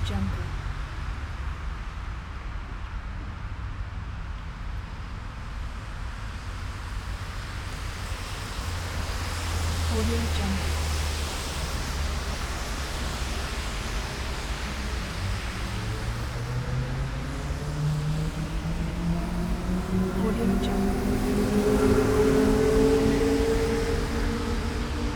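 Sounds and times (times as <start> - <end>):
wet busy street ambience: 0.0 - 25.1.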